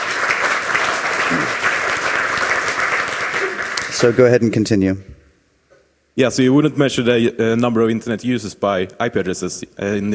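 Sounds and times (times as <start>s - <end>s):
audience applause: 0.0s - 4.3s
speech: 4.0s - 5.2s, 6.2s - 10.1s.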